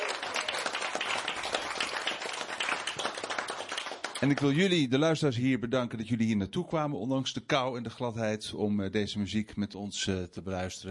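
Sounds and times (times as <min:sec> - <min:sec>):
audience applauding musicians in a jazz club: 0:00.0 - 0:04.8
speech: 0:04.2 - 0:10.8.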